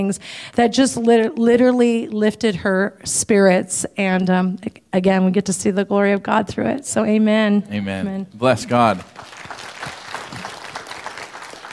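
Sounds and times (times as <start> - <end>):
speech: 0.0 - 9.4
audience applauding: 8.6 - 11.7.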